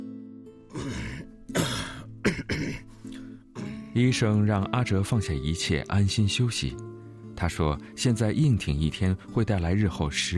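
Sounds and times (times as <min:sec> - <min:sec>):
voice imitating the dry hacking cough of a man with tuberculosis: 0:00.7 - 0:04.0
speech: 0:04.0 - 0:10.3.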